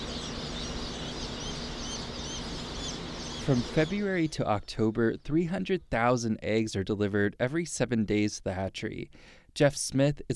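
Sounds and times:
thousands of freshly hatched chicks peeping at Cackle Hatchery in Lebanon, Missouri: 0.0s - 6.1s
speech: 3.5s - 10.3s.

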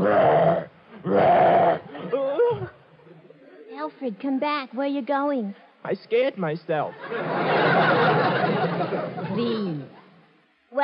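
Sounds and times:
voice imitating a wolf's growl: 0.0s - 2.8s
speech: 4.0s - 10.0s
laughter: 6.9s - 9.4s.

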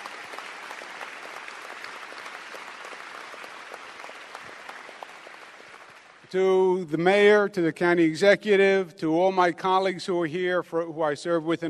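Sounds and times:
audience applause: 0.0s - 6.3s
speech: 6.3s - 11.6s.

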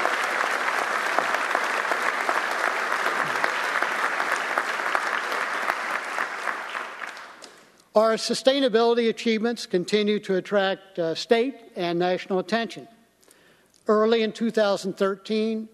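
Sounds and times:
audience applause: 0.0s - 7.4s
speech: 8.0s - 13.0s, 13.9s - 15.7s.

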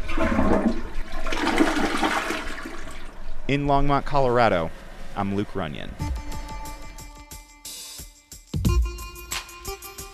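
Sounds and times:
brand new toilet flushing: 0.0s - 3.2s
speech: 3.5s - 6.0s.

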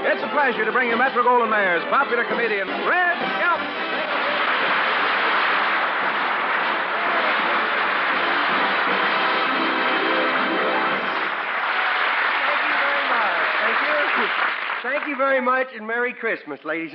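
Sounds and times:
speech: 0.1s - 4.2s, 14.8s - 16.9s
audience applause: 2.1s - 15.5s.

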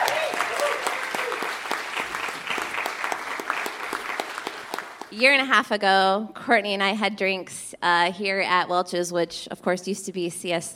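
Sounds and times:
audience applause greeting a speaker called to the stage: 0.0s - 5.1s
speech: 5.2s - 10.7s.

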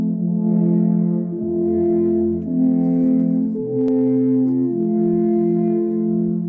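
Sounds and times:
traditional Swiss alphorns playing a melody: 0.0s - 6.4s.

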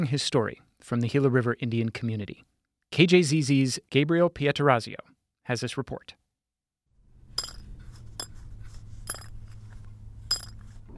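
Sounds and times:
speech: 0.0s - 6.2s
low steady hum: 7.1s - 10.9s
small metal dog tag clinking: 7.4s - 8.3s, 9.1s - 9.3s, 10.3s - 10.6s.

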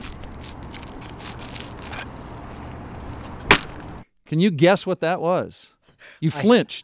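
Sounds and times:
plastic wrapper crinkling as it comes off a straw: 0.0s - 3.4s
speech: 4.3s - 6.8s.

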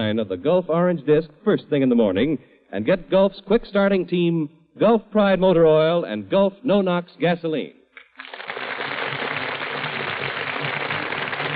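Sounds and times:
speech: 0.0s - 8.4s
burst of audience applause: 8.0s - 11.5s.

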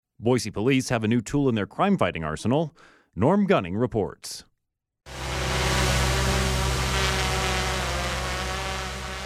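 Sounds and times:
speech: 0.2s - 5.2s
Boise Police Department drone flying: 5.1s - 9.2s.

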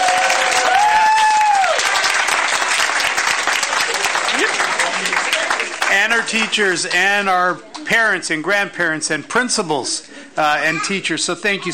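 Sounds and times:
audience applause: 0.0s - 6.6s
speech: 6.2s - 11.7s.

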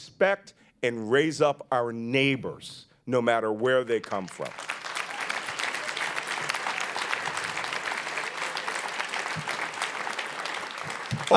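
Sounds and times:
speech: 0.2s - 4.7s
audience applause: 4.4s - 11.3s.

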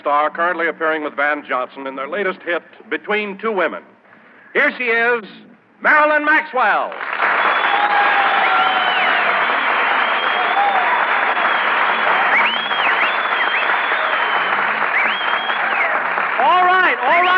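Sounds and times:
speech: 0.0s - 7.4s
audience applause: 6.9s - 17.3s.

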